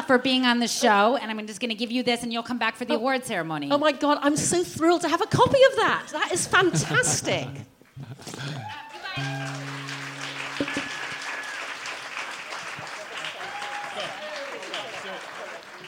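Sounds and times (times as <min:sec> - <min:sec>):
speech: 0:00.1 - 0:09.3
whoops and cheering voices: 0:08.5 - 0:09.4, 0:13.2 - 0:14.7
audience applause: 0:08.6 - 0:15.8.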